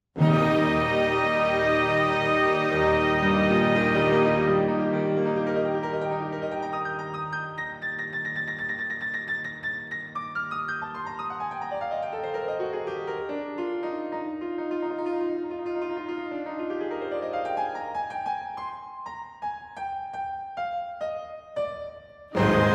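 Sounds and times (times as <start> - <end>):
piano concerto: 0.2 - 22.7.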